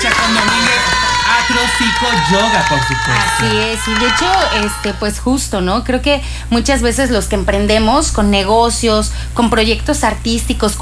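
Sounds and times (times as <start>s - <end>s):
audience applause: 0.0s - 5.2s
crowd cheering: 0.0s - 5.3s
speech: 1.6s - 10.8s.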